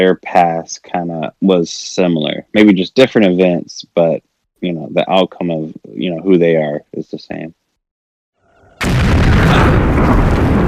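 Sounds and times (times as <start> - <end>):
speech: 0.0 - 7.6
land mine explosion: 8.8 - 10.6.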